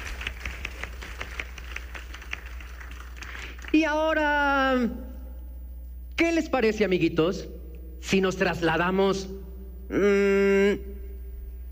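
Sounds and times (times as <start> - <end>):
audience applause for the double bass players: 0.0 - 3.8
low steady hum: 0.0 - 11.7
speech: 3.7 - 5.1, 6.2 - 11.0.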